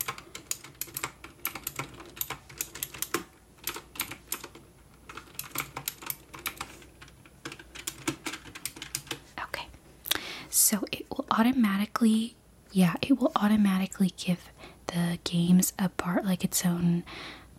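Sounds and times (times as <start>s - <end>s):
typing on a computer keyboard: 0.0s - 9.3s
speech: 10.7s - 17.5s.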